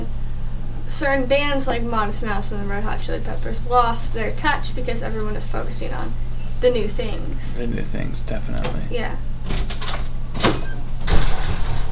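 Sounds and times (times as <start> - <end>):
speech: 0.9 - 9.3
door shutting thud: 9.4 - 11.9.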